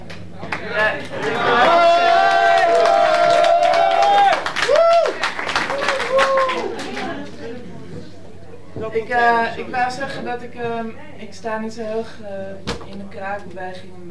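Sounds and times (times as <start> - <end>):
audience applause: 0.1 - 7.7
speech: 9.0 - 14.0.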